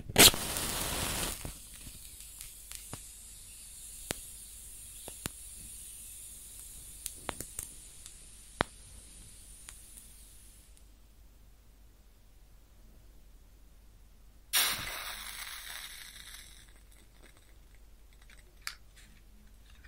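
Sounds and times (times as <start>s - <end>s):
match striking: 0.1s - 10.8s, 14.5s - 18.8s
hissing sizzle with pops: 0.2s - 10.8s, 14.5s - 17.4s.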